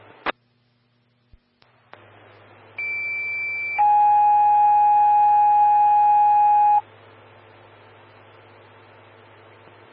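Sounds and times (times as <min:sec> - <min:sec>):
fire dispatch alert tones: 0:02.8 - 0:06.8.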